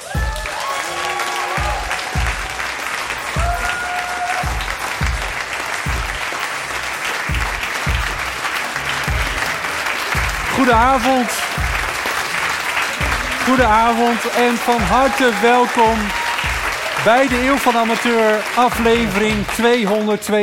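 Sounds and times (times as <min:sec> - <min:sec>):
rhythmic low thump: 0:00.0 - 0:00.4, 0:01.6 - 0:15.2, 0:15.8 - 0:17.7, 0:18.6 - 0:19.6
whoops and cheers: 0:00.0 - 0:04.7, 0:12.8 - 0:17.6
crowd applauding: 0:00.0 - 0:20.4
speech: 0:10.6 - 0:11.4, 0:13.5 - 0:16.2, 0:17.0 - 0:20.4.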